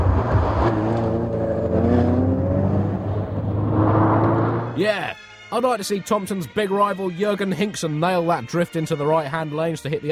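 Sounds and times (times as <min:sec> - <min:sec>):
car engine driving on the M25 motorway near Junction 5: 0:00.0 - 0:04.8
speech: 0:04.8 - 0:10.1.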